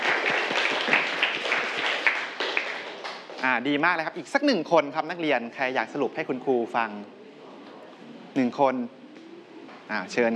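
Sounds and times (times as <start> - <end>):
students applauding in a classroom: 0.0 - 3.5
speech: 3.4 - 7.2, 8.4 - 9.0, 9.9 - 10.3.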